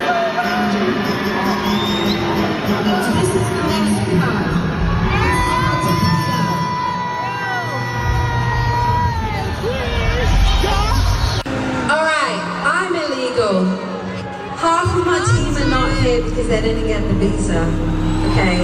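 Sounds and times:
large crowd booing a performer off a stage: 0.0s - 12.7s, 13.4s - 18.6s
shrill whistles: 1.5s - 2.4s.

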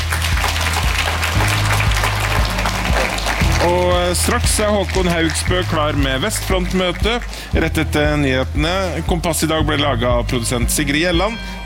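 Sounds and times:
audience applause: 0.0s - 8.9s
speech: 3.6s - 11.6s.

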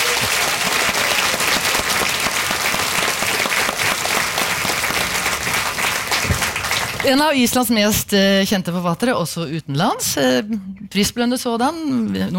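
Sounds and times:
audience clapping: 0.0s - 7.6s
speech: 7.1s - 12.3s.

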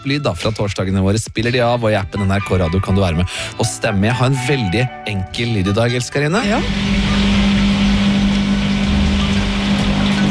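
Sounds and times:
speech: 0.0s - 7.1s
washing machine running: 6.2s - 10.3s.

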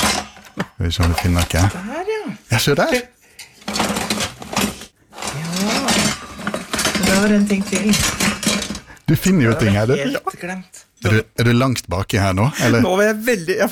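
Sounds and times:
metal kitchen utensils clattering in a very large kitchen drawer: 0.0s - 1.7s, 3.4s - 9.9s
speech: 0.8s - 3.5s, 7.2s - 8.3s, 9.1s - 13.7s.

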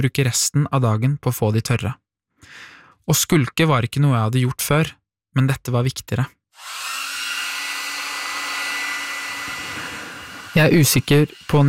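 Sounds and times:
speech: 0.0s - 6.9s, 10.6s - 11.6s
electric hand dryer blowing: 6.6s - 11.6s.

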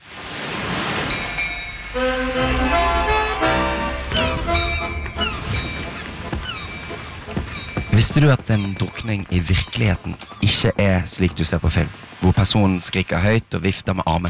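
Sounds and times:
rushing wash of noise in a show jingle: 0.4s - 8.0s
sustained horn-like harmonic tones in a podcast jingle: 1.1s - 7.8s
speech: 8.0s - 14.2s.

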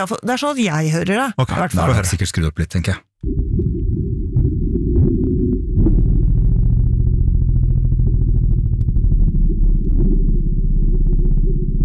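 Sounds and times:
speech: 0.0s - 3.4s
elephant low-frequency communication rumble: 3.3s - 11.8s.

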